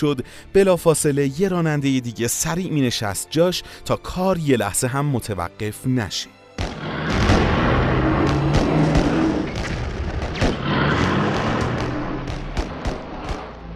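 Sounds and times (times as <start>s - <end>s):
speech: 0.0s - 6.4s
heavy enemy artillery fire: 6.6s - 13.7s.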